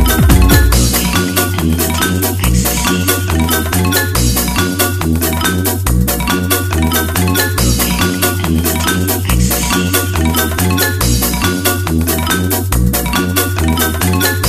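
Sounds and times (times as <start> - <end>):
glockenspiel: 0.0 - 14.4.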